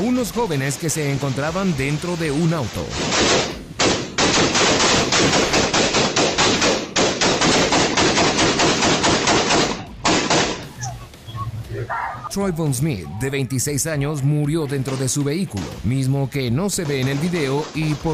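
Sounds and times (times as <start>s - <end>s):
speech: 0.2s - 3.6s, 12.4s - 18.1s
gunfire: 1.0s - 10.7s, 14.8s - 15.8s, 16.7s - 18.1s.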